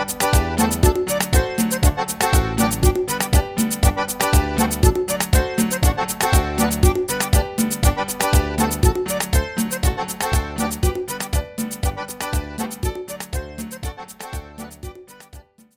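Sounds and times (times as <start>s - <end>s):
merengue music: 0.0s - 15.7s.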